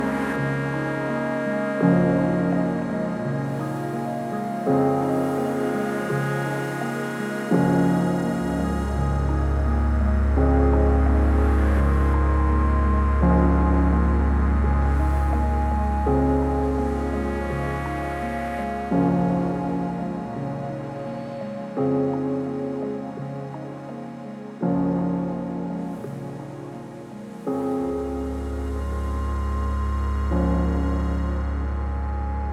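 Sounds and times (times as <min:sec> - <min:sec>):
house bass on a synthesizer: 0:00.0 - 0:32.5.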